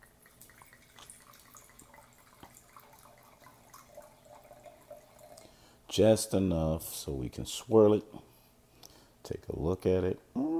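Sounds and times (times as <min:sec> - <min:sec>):
wine pouring into a glass: 0:00.0 - 0:05.6
speech: 0:06.0 - 0:08.3, 0:09.3 - 0:10.4.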